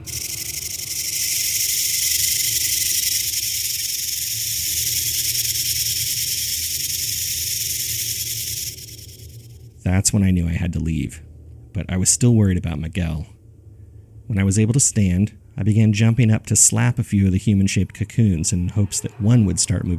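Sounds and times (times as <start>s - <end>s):
muffled chittering of many creatures: 0.0s - 9.6s
speech: 9.9s - 13.4s, 14.3s - 19.9s.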